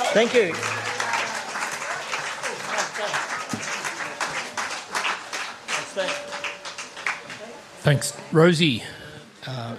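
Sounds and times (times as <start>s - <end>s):
speech: 0.1s - 0.8s, 7.9s - 9.6s
gentle rain pattering on a roof: 0.5s - 7.5s.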